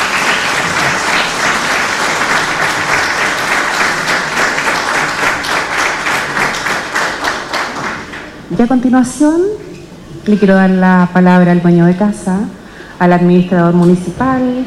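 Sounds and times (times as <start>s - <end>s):
audience applause: 0.0s - 8.5s
speech: 8.6s - 9.7s, 10.3s - 14.6s.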